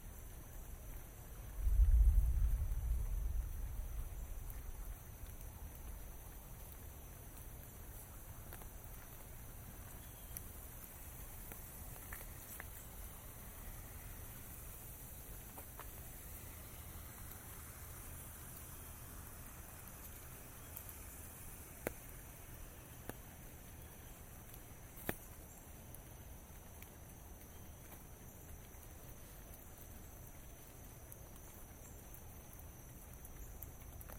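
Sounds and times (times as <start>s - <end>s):
rain during a walk: 0.0s - 34.1s
heavy low rumble: 1.5s - 5.7s.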